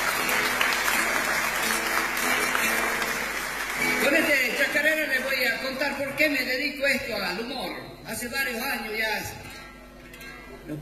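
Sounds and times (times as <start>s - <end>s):
crowd clapping: 0.0s - 6.2s
speech: 5.8s - 9.4s.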